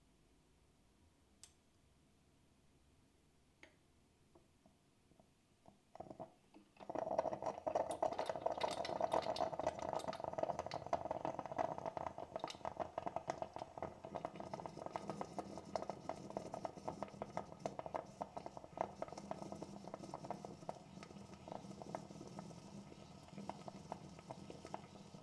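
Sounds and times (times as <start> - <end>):
coffee machine: 6.8 - 25.2.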